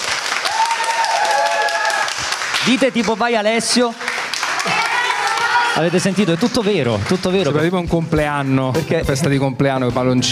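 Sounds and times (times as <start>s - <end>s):
live audience applause: 0.0s - 8.6s
speech: 2.6s - 4.0s, 4.6s - 4.8s, 5.8s - 10.3s.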